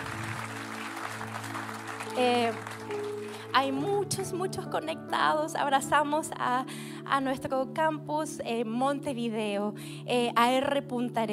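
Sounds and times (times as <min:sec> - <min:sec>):
audience applause: 0:00.0 - 0:03.6
speech: 0:02.2 - 0:11.3.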